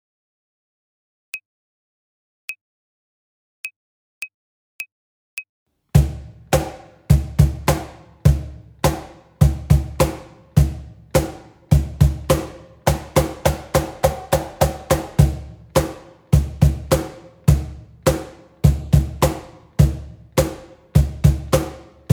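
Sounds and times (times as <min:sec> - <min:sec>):
rock pop drum fills: 0:06.0 - 0:22.1.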